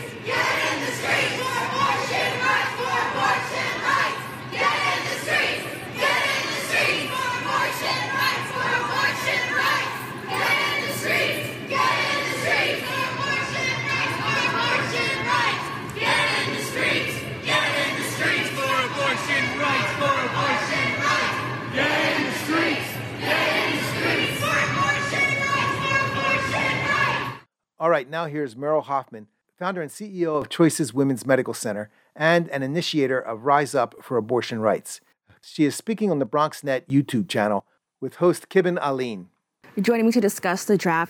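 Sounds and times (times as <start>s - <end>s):
street protest crowd chanting in downtown Los Angeles: 0.0s - 27.5s
speech: 28.2s - 41.0s.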